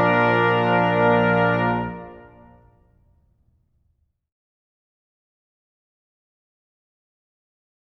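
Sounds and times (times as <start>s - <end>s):
national anthem: 0.0s - 2.8s.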